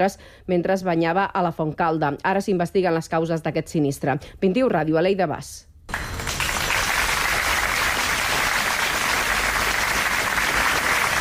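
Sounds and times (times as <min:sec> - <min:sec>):
speech: 0:00.0 - 0:06.0
crowd applause after a minute of silence: 0:05.9 - 0:11.1.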